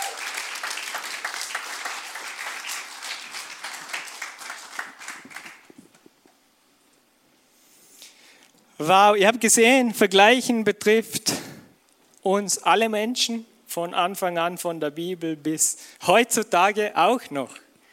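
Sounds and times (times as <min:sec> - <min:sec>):
audience applause: 0:00.0 - 0:06.0
speech: 0:08.8 - 0:11.4, 0:12.2 - 0:17.6.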